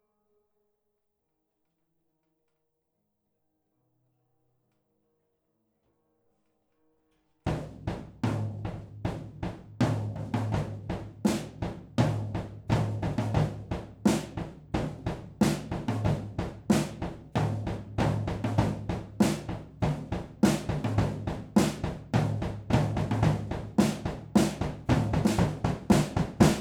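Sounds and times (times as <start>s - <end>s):
drums recorded with stereo overhead microphones: 7.5s - 26.6s.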